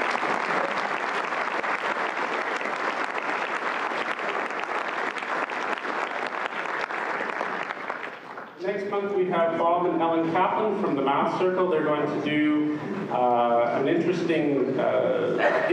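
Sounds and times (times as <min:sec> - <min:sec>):
audience applause at a school gathering: 0:00.0 - 0:08.6
speech: 0:08.9 - 0:15.7.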